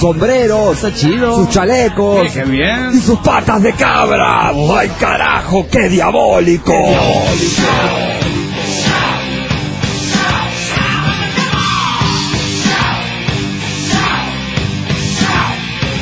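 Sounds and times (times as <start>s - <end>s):
speech: 0.0s - 8.2s
people shouting: 6.7s - 13.2s, 13.8s - 15.8s.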